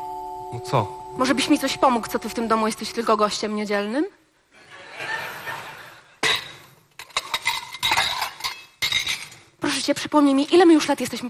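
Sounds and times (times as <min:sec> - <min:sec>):
speech: 0:00.5 - 0:04.2, 0:09.8 - 0:11.2
laughter: 0:04.6 - 0:06.2
cutlery and dishes clinking while being washed up: 0:06.2 - 0:09.5.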